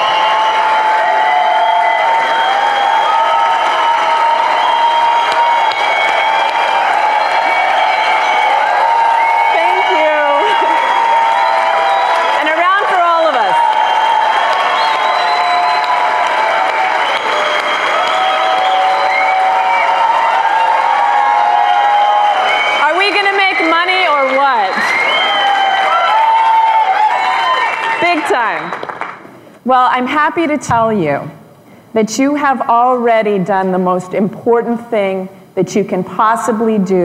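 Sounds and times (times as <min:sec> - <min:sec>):
audience whoops and shouts: 0:00.0 - 0:28.8
audience applauding to welcome a speaker at a stock market seminar: 0:00.0 - 0:29.3
speech: 0:29.7 - 0:37.0.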